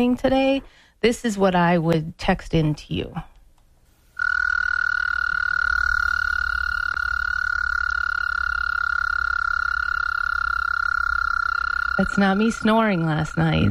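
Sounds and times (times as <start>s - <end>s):
speech: 0.0s - 3.3s, 12.0s - 13.7s
American toad trilling call: 4.2s - 13.7s.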